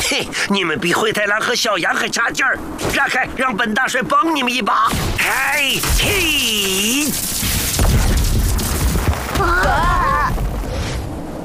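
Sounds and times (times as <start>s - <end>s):
speech: 0.1s - 7.5s
rocks being smashed to pieces: 4.9s - 10.8s.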